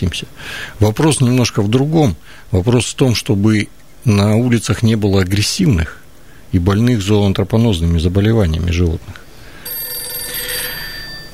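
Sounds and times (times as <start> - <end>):
speech: 0.0 - 9.2
telephone ringing, incoming call: 9.6 - 11.3.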